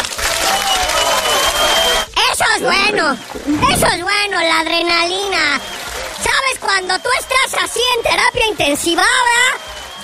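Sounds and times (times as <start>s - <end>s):
applause: 0.0s - 3.3s, 4.3s - 10.0s
speech: 2.6s - 10.0s.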